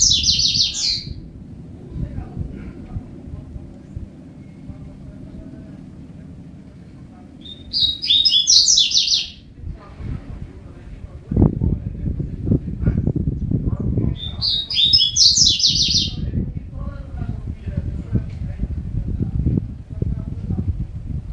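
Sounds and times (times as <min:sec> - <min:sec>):
Double-collared seedeater song: 0:00.0 - 0:01.2, 0:07.4 - 0:09.4, 0:14.2 - 0:16.2
low rumble: 0:00.0 - 0:21.3.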